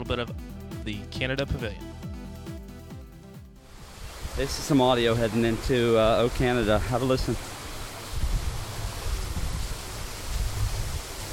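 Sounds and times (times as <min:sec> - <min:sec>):
speech: 0:00.1 - 0:02.0, 0:04.4 - 0:07.5
water cascading down through a canyon: 0:03.6 - 0:11.3.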